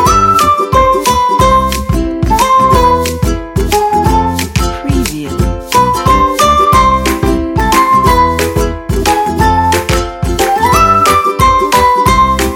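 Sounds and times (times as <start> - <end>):
happy ukulele music: 0.0 - 12.5.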